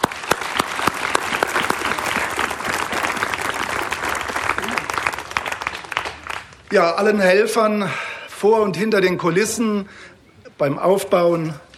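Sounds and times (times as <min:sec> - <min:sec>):
audience applause: 0:00.0 - 0:06.8
speech: 0:06.7 - 0:11.6.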